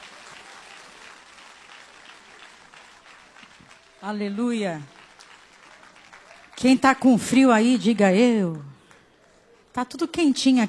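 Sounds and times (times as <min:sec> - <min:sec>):
audience clapping: 0:00.0 - 0:07.2
speech: 0:04.0 - 0:05.0, 0:06.6 - 0:08.8, 0:09.8 - 0:10.6.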